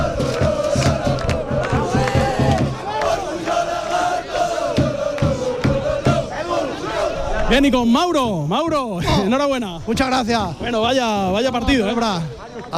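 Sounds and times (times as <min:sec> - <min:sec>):
football fans chanting in celebration: 0:00.0 - 0:08.4
speech: 0:07.5 - 0:12.7.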